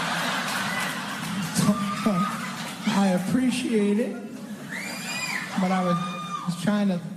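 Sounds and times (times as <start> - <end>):
audience clapping: 0.0 - 3.5
speech: 3.0 - 4.3, 5.6 - 7.1.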